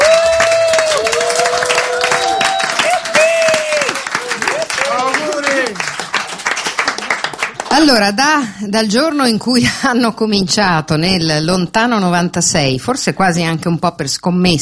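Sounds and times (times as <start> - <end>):
crowd cheers and whistles: 0.0 - 5.6
audience applause: 0.0 - 7.9
speech: 7.9 - 14.6.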